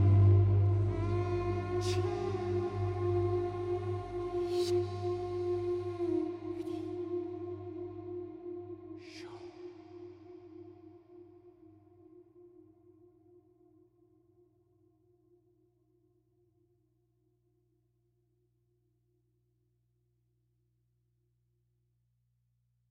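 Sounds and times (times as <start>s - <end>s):
dark music: 0.0s - 9.0s.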